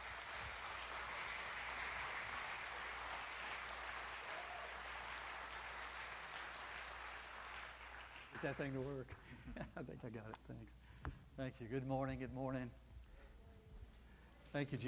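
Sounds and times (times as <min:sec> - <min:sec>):
church congregation applause welcoming a pastor: 0:00.0 - 0:09.1
speech: 0:08.4 - 0:12.8, 0:14.5 - 0:14.8.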